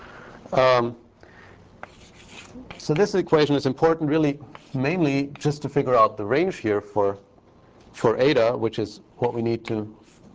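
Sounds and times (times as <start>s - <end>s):
speech: 0.5s - 1.0s, 2.6s - 7.3s, 8.0s - 10.0s
writing on a board during a physics lecture: 1.8s - 3.2s, 4.4s - 5.5s.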